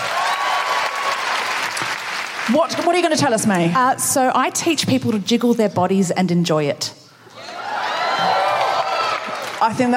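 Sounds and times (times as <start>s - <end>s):
comedy audience applause: 0.0s - 3.1s, 7.6s - 9.9s
speech: 2.5s - 7.0s, 9.6s - 9.9s.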